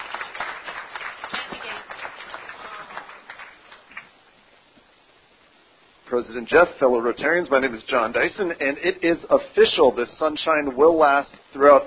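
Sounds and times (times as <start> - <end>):
applause at a Rotary club meeting welcoming a guest: 0.0 - 4.1
speech: 6.1 - 11.8.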